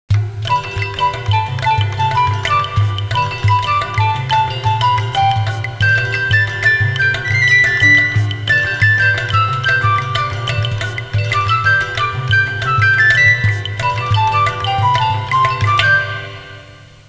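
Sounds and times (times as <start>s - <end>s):
Hawaiian music ringtone: 0.2s - 17.0s.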